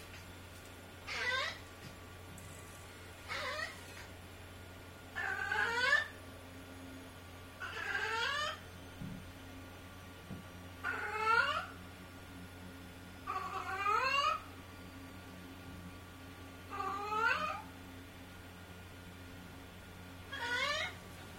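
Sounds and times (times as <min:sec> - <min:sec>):
cat: 0:01.1 - 0:01.6, 0:03.3 - 0:04.1, 0:05.2 - 0:06.1, 0:07.6 - 0:08.6, 0:10.8 - 0:11.7, 0:13.3 - 0:14.4, 0:16.7 - 0:17.7, 0:20.3 - 0:21.0.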